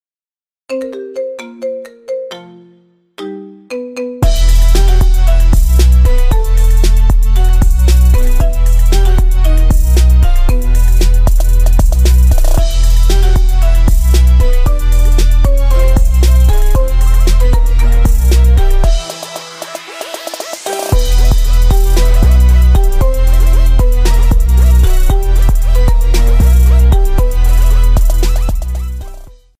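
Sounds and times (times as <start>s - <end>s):
marimba remix: 0.7s - 29.4s.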